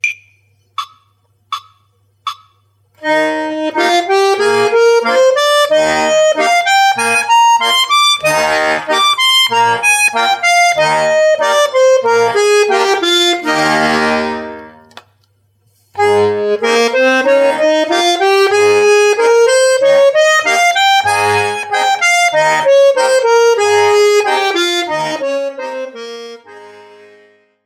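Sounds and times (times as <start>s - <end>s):
E-flat and D-flat major scales: 0.8s - 14.9s, 16.0s - 27.5s.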